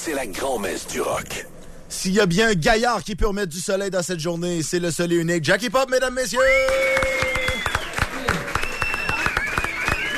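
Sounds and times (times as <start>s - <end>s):
speech: 0.0s - 7.3s
excited whistles and shouts: 6.3s - 10.1s
crowd cheering and applauding: 6.4s - 10.1s.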